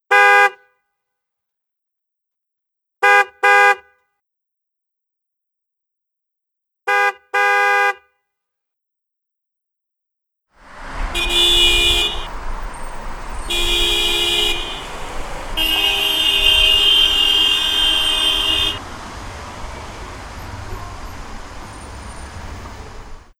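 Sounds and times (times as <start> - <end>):
car horn on the Golden Gate Bridge: 0.1 - 0.6, 3.0 - 3.8, 6.9 - 8.0, 10.6 - 23.3.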